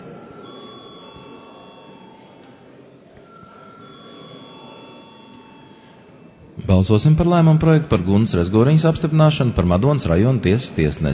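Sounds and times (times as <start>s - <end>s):
chamber bell ringing to call a vote: 0.0s - 6.4s
faint murmuring: 0.0s - 11.1s
speech: 6.7s - 11.1s.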